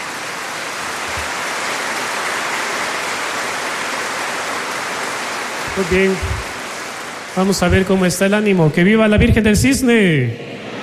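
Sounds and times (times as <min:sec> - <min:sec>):
audience applause: 0:01.0 - 0:07.6, 0:10.4 - 0:10.8
speech: 0:05.8 - 0:06.4, 0:07.4 - 0:10.5.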